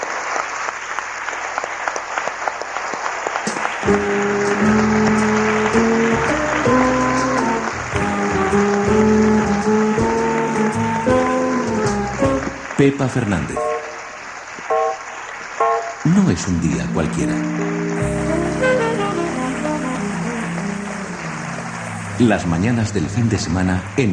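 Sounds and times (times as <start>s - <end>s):
studio audience applause: 0.0s - 24.1s
speech: 3.9s - 4.7s, 13.0s - 13.7s, 16.4s - 17.7s, 22.2s - 24.1s
music with held chords: 3.9s - 12.7s, 16.8s - 22.2s.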